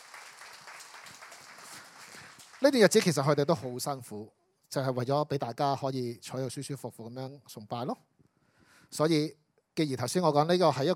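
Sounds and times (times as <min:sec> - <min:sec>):
congregation applauding volunteers and staff at a church service: 0:00.0 - 0:03.7
speech: 0:02.6 - 0:08.1, 0:08.9 - 0:10.9.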